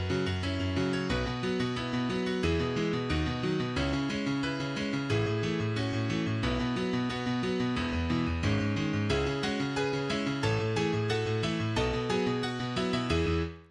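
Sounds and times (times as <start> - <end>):
MIDI piano: 0.0 - 13.7.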